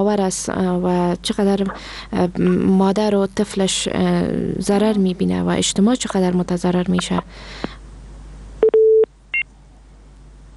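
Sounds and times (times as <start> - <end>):
speech: 0.0 - 7.8
telephone line tones after a caller is disconnected: 8.6 - 9.1.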